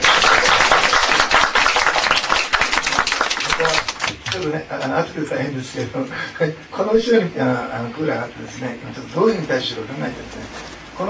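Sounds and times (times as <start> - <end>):
audience clapping: 0.0 - 4.5
speech: 4.4 - 11.0.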